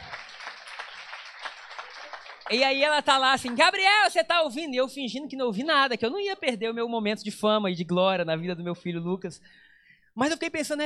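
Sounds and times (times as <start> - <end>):
audience applauding: 0.0 - 3.7
speech: 2.5 - 9.6, 10.2 - 10.8.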